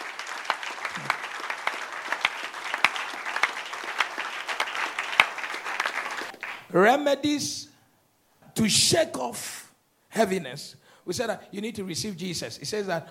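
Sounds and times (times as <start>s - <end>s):
audience clapping: 0.0s - 6.7s
speech: 6.7s - 7.7s, 8.6s - 13.1s.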